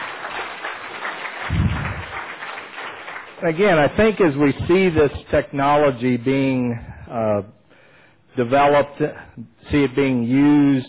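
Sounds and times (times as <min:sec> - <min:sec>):
round of applause: 0:00.0 - 0:04.2
speech: 0:03.4 - 0:07.6, 0:08.4 - 0:10.8.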